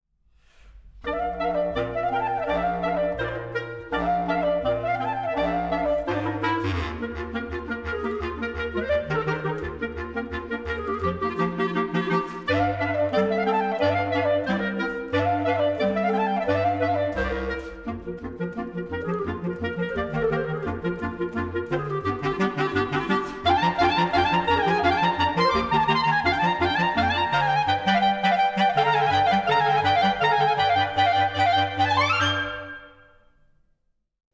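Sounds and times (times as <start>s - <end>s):
clarinet quartet playing folk dances: 1.0s - 33.2s.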